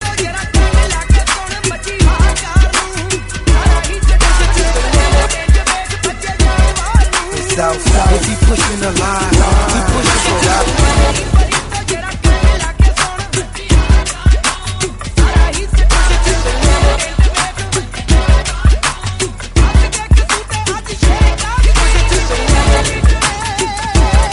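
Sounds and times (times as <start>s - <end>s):
Punjabi DJ ringtone: 0.2s - 24.3s.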